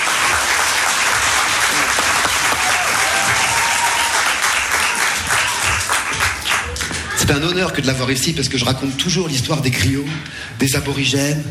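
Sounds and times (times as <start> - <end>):
audience applauding to welcome a guest musician: 0.0 - 7.2
speech: 7.3 - 11.4.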